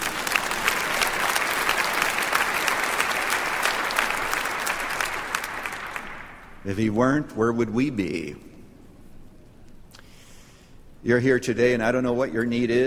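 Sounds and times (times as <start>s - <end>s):
audience clapping: 0.0s - 6.8s
speech: 6.6s - 8.5s, 11.0s - 12.8s.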